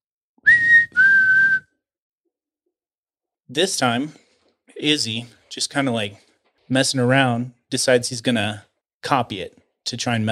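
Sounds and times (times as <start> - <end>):
whistle heard from a foggy bridge: 0.4 - 1.8
speech: 3.5 - 4.2, 4.8 - 10.3.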